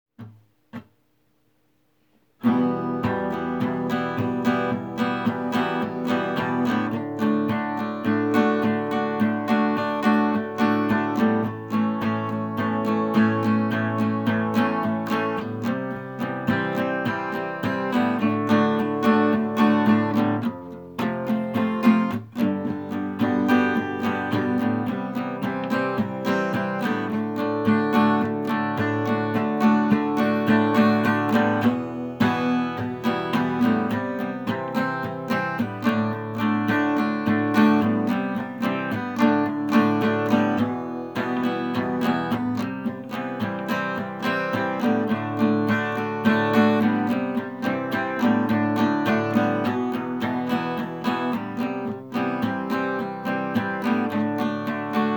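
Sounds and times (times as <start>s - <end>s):
acoustic music: 2.0s - 55.1s.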